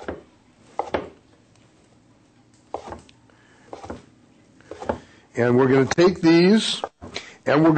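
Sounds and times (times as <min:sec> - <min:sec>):
knife cutting blocks of seitan into small strips: 0:00.0 - 0:01.2, 0:02.7 - 0:03.0, 0:03.7 - 0:04.1, 0:04.7 - 0:05.1
speech: 0:05.4 - 0:07.7.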